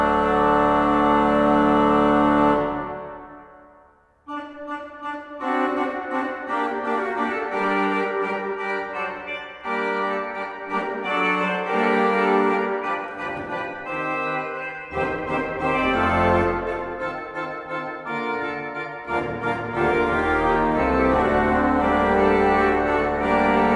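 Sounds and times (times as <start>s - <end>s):
pipe organ: 0.0s - 23.7s.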